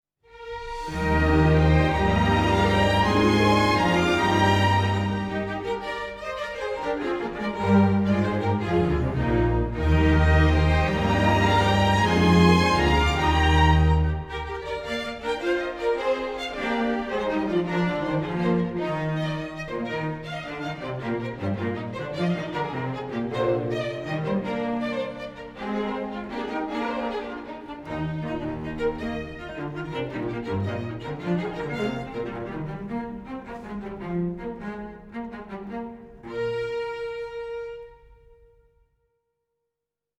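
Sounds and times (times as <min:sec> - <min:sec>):
celebratory strings music: 0:00.6 - 0:38.0.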